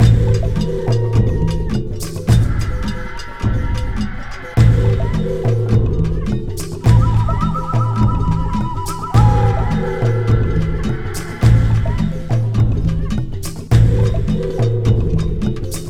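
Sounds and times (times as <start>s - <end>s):
Aztec worshipper chanting: 0.0s - 15.5s.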